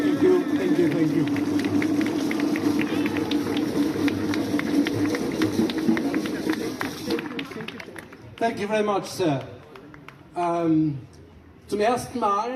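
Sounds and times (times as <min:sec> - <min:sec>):
audience applause: 0:00.0 - 0:08.6
speech: 0:08.4 - 0:09.5, 0:10.4 - 0:11.1, 0:11.7 - 0:12.5.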